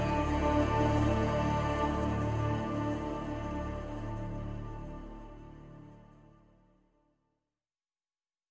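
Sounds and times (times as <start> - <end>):
synth pads: 0.0 - 6.4.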